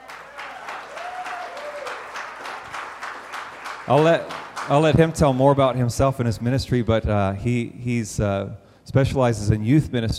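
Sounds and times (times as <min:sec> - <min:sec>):
audience applause welcoming a guest pastor at a church gathering: 0:00.0 - 0:05.9
speech: 0:03.9 - 0:10.1.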